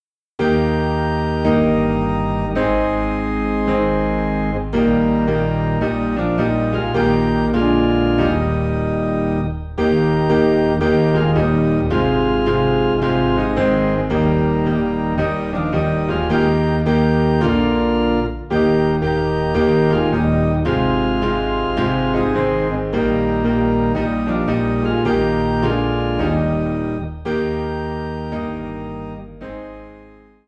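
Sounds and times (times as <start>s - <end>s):
low organ in E flat: 0.4s - 30.4s
low piano in E flat: 0.4s - 30.4s.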